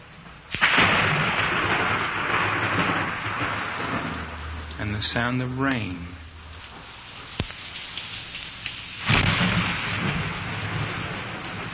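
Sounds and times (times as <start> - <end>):
thunder: 0.6 - 5.2, 9.0 - 11.7
speech: 5.0 - 6.1.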